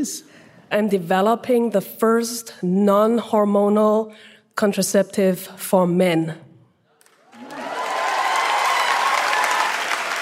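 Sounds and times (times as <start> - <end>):
speech: 0.0 - 6.4
audience applause: 7.0 - 10.2.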